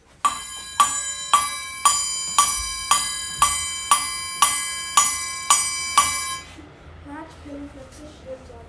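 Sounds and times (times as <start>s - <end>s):
clock striking midnight: 0.0s - 6.6s.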